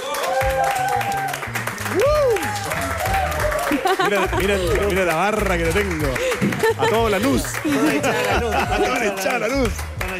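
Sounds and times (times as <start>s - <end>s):
audience applause: 0.0s - 10.1s
person whooping: 0.2s - 3.8s
upbeat music with a thumping bass line: 0.4s - 10.1s
laughter: 3.6s - 9.9s
speech: 3.8s - 10.1s.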